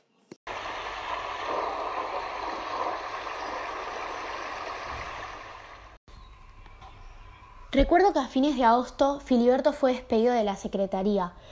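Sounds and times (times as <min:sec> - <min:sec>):
rain falling: 0:00.5 - 0:06.0
speech: 0:07.8 - 0:11.5.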